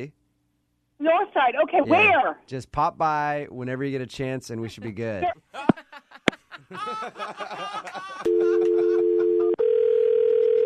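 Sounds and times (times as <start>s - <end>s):
speech: 0.0s - 0.2s, 1.0s - 5.8s, 6.6s - 8.7s
person chuckling and talking: 4.8s - 9.6s
phone dial tone after hang-up: 8.3s - 10.6s.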